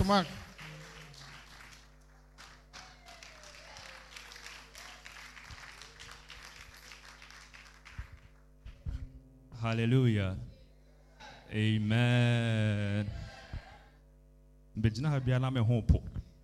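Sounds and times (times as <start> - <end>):
speech: 0.0 - 0.4, 9.6 - 10.5, 11.5 - 13.2, 14.8 - 16.2
audience clapping: 0.0 - 8.8.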